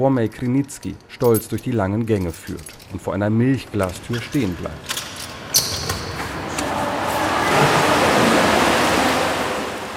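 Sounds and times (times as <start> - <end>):
speech: 0.0 - 5.6
splashing water in an indoor swimming pool hall: 6.3 - 9.9.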